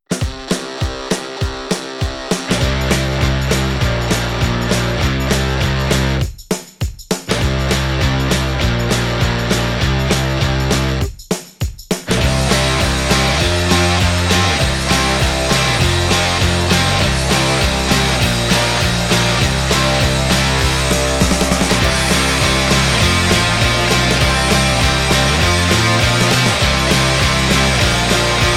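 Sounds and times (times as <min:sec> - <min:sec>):
rock music: 0:00.1 - 0:06.3, 0:07.2 - 0:11.1, 0:12.0 - 0:28.5.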